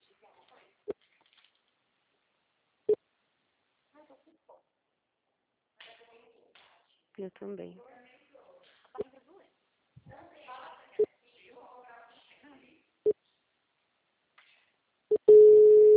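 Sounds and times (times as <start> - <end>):
speech: 7.2 - 7.9
telephone call ringing tones: 15.1 - 15.9.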